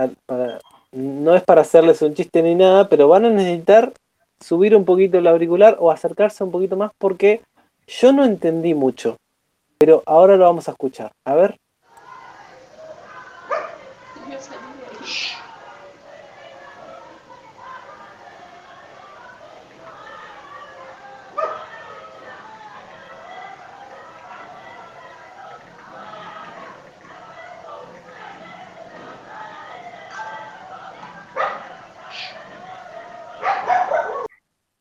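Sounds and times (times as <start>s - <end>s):
speech: 0.0s - 0.3s, 0.9s - 9.2s, 9.8s - 11.6s, 14.4s - 15.4s
murmur of people talking: 11.9s - 34.3s
dog barking below a house: 12.8s - 14.2s, 21.3s - 21.8s, 31.3s - 32.5s, 33.3s - 34.4s.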